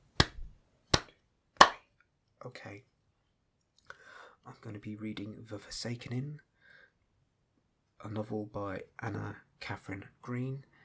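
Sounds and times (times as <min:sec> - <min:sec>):
hand claps: 0:00.2 - 0:01.8
speech: 0:02.4 - 0:02.9, 0:04.4 - 0:06.5, 0:08.0 - 0:10.7.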